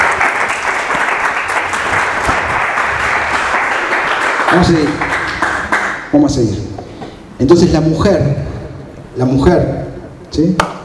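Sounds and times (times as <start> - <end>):
large gathering applauding: 0.0 - 6.1
speech: 4.5 - 5.1, 6.1 - 6.7, 7.4 - 8.5, 9.2 - 10.8.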